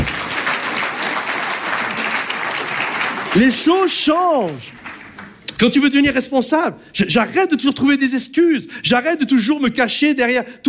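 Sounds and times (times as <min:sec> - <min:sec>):
audience applause: 0:00.0 - 0:05.4
speech: 0:03.3 - 0:04.9, 0:05.6 - 0:10.6.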